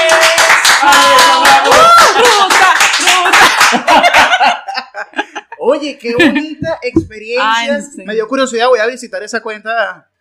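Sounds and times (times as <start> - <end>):
audience clapping: 0.0 - 4.5
voices cheering and whooping: 0.1 - 3.1
laughter: 1.8 - 6.9
speech: 5.9 - 10.1.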